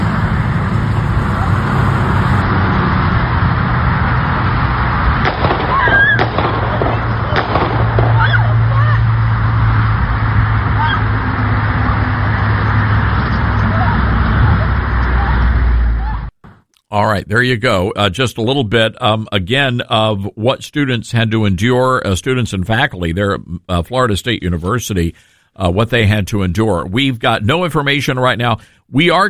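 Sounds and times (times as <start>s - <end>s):
loud constant rushing noise: 0.0s - 16.3s
gunshots during the shooting at Florida State University's Student Union building: 5.2s - 8.7s
speech: 17.0s - 29.2s.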